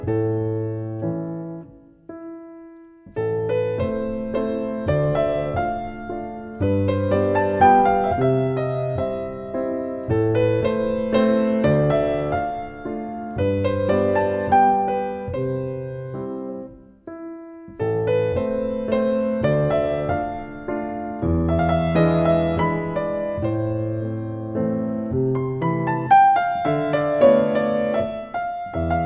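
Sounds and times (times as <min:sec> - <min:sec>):
waltz in A minor on piano: 0:00.0 - 0:29.0.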